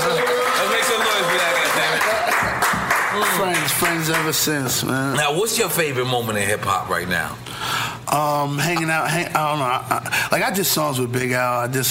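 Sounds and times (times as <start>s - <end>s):
audience at a hip-hop interview applauding: 0.0s - 4.5s
speech: 4.1s - 11.8s.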